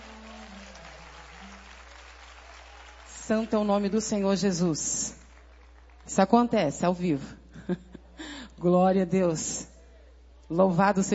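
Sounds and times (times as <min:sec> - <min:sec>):
audience applauding: 0:00.0 - 0:04.3, 0:05.1 - 0:06.1
speech: 0:03.3 - 0:05.2, 0:06.1 - 0:07.8, 0:08.6 - 0:09.7, 0:10.5 - 0:11.1.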